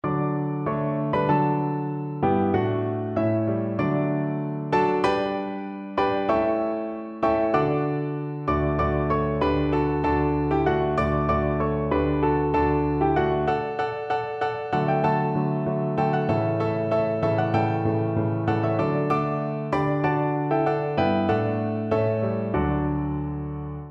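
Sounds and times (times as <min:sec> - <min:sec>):
piano duet of a Christmas carol: 0:00.0 - 0:23.9.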